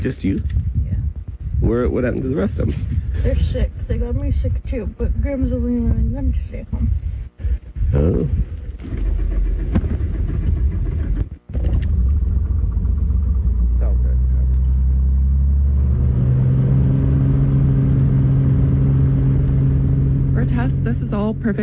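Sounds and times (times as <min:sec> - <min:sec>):
speech: 0:00.0 - 0:00.6, 0:01.6 - 0:09.6, 0:21.4 - 0:21.6
small six-seater plane engine droning: 0:00.0 - 0:21.6.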